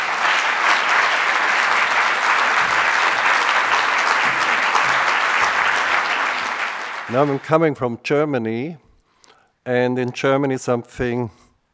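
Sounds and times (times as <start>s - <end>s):
audience applause welcoming a visiting professor before a lecture: 0.0s - 7.6s
speech: 7.1s - 8.8s, 9.6s - 11.4s.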